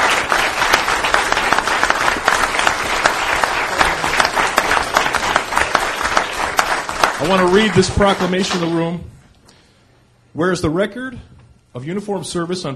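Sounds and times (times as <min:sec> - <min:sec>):
audience applauding: 0:00.0 - 0:08.9
speech: 0:07.3 - 0:09.2, 0:10.4 - 0:12.7.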